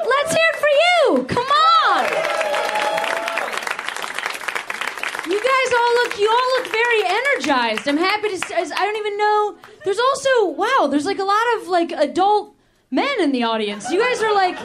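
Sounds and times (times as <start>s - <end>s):
audience applause and cheering: 0.0s - 7.9s
speech: 7.5s - 14.6s
laughter: 13.7s - 14.6s.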